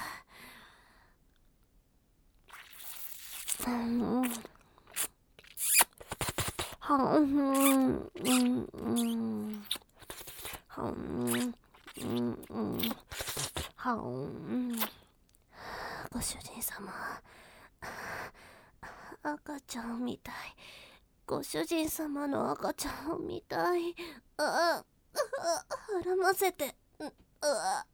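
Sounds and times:
ear licking mouth sounds: 0:02.5 - 0:06.8, 0:07.6 - 0:13.8
speech: 0:03.6 - 0:04.6, 0:06.9 - 0:09.8, 0:10.8 - 0:13.2, 0:13.8 - 0:15.0, 0:16.1 - 0:18.1, 0:19.2 - 0:27.9.

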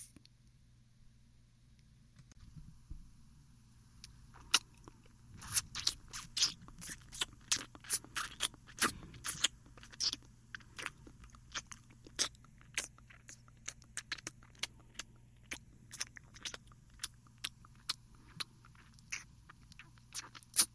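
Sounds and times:
ear licking in the left ear: 0:04.0 - 0:20.7.

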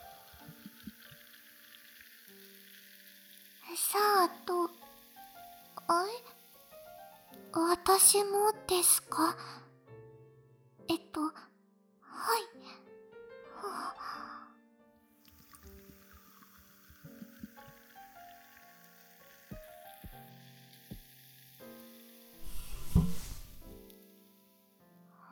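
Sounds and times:
beer fizzing with small bubbles: 0:00.0 - 0:08.3, 0:15.2 - 0:24.8
speech: 0:07.9 - 0:09.6, 0:11.1 - 0:11.5.

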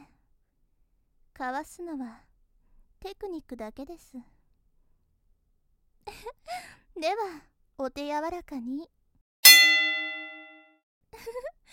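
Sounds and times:
speech: 0:01.4 - 0:02.3, 0:03.0 - 0:04.4, 0:06.4 - 0:09.0, 0:11.2 - 0:11.7
gong struck to signal the start of a match: 0:09.4 - 0:10.6.

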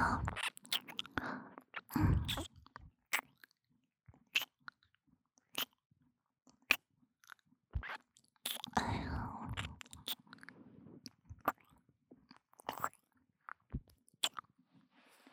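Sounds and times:
ASMR ear licking sounds: 0:00.2 - 0:03.5, 0:07.3 - 0:10.5, 0:12.6 - 0:13.0, 0:13.6 - 0:14.4.

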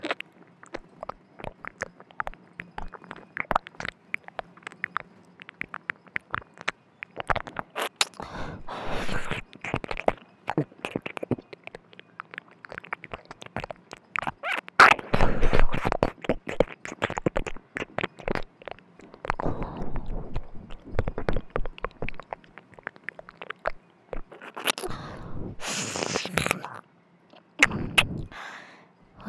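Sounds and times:
ear licking: 0:00.0 - 0:28.4
sensual breathy sighs: 0:08.2 - 0:09.4, 0:24.7 - 0:26.8, 0:27.7 - 0:29.2.

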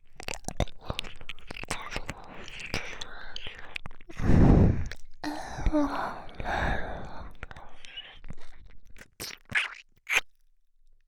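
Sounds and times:
ear licking sounds: 0:00.0 - 0:10.2
person moaning: 0:05.2 - 0:06.5.

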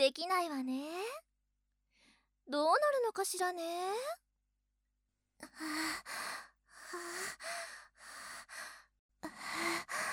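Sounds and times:
speech: 0:00.0 - 0:01.2, 0:02.5 - 0:04.2, 0:05.4 - 0:07.8
breathing: 0:01.9 - 0:02.4, 0:05.6 - 0:10.1.

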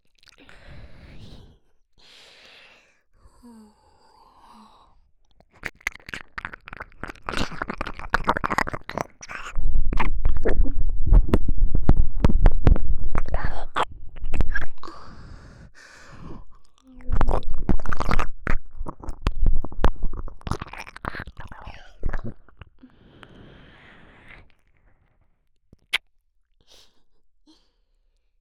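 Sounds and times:
ear licking sounds on the right: 0:05.3 - 0:23.3.

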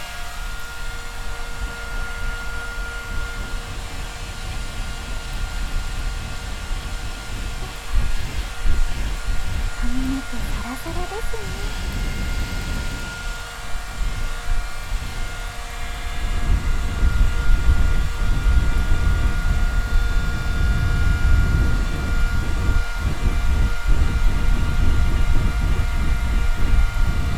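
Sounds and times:
hair dryer: 0:00.0 - 0:27.3
oil massage: 0:07.0 - 0:13.2.

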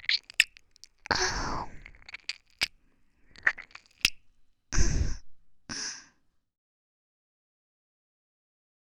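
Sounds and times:
ASMR ear licking sounds: 0:00.0 - 0:04.3.

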